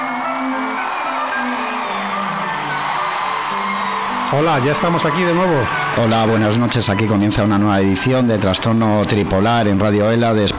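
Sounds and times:
crowd cheering and whooping as two hosts are welcomed: 0:00.0 - 0:07.6
speech: 0:04.3 - 0:10.5.

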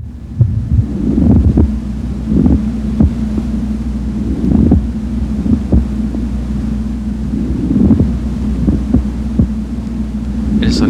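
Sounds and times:
steady low hum: 0:00.0 - 0:10.8
pleural friction rub heard through a stethoscope: 0:00.3 - 0:06.2, 0:07.2 - 0:09.6.

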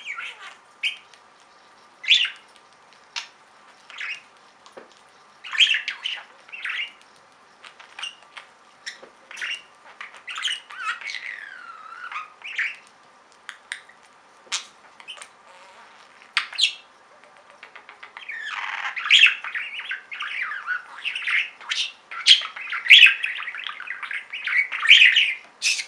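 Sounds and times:
budgerigar chirps: 0:00.0 - 0:01.1, 0:05.4 - 0:07.0, 0:07.6 - 0:12.8, 0:13.6 - 0:25.8.

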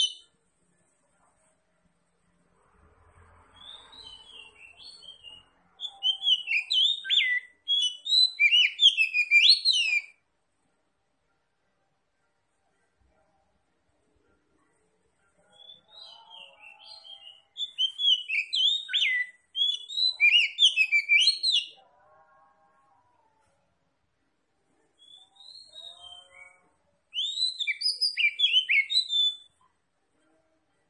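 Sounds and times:
Oriental magpie-robin song: 0:00.0 - 0:00.3, 0:03.6 - 0:10.2, 0:15.6 - 0:21.7, 0:25.0 - 0:29.5.

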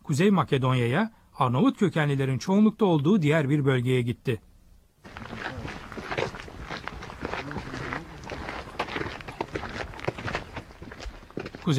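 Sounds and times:
speech: 0:00.1 - 0:05.2
footsteps climbing a hill on a dirt road in North Macedonia: 0:05.0 - 0:11.7.

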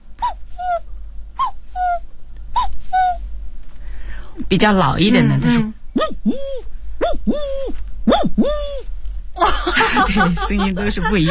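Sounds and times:
low steady hum: 0:00.0 - 0:11.2
voice imitating a young cuckoo's call: 0:00.2 - 0:00.8, 0:01.4 - 0:02.0, 0:02.6 - 0:03.2, 0:06.0 - 0:08.9
speech: 0:04.5 - 0:06.5, 0:09.7 - 0:11.2
laughter: 0:09.4 - 0:11.2.

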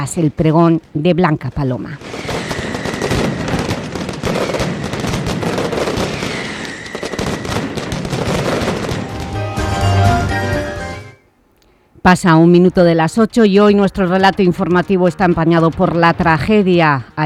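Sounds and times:
speech: 0:00.0 - 0:02.3, 0:12.0 - 0:17.2
festival firecracker barrage: 0:02.0 - 0:11.2.

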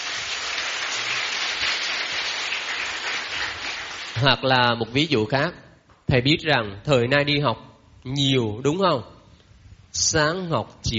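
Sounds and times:
loud round of applause: 0:00.0 - 0:04.2
speech: 0:04.2 - 0:09.2, 0:10.0 - 0:10.9.

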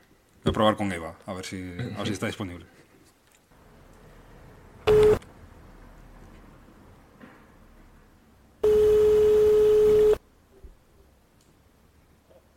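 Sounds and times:
speech: 0:00.5 - 0:02.8
telephone busy tone on an unanswered phone call: 0:04.9 - 0:05.2, 0:08.6 - 0:10.2.

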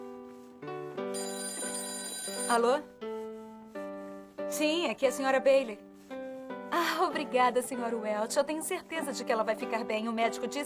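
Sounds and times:
telephone ringing with a bright electronic tone: 0:01.1 - 0:02.9
speech: 0:02.5 - 0:03.0, 0:04.6 - 0:05.9, 0:06.7 - 0:10.6.

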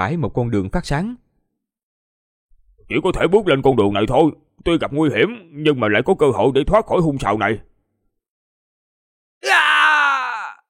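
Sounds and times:
speech: 0:00.0 - 0:01.2, 0:02.9 - 0:07.7
anguished scream audiobook sound effect: 0:09.4 - 0:10.6.

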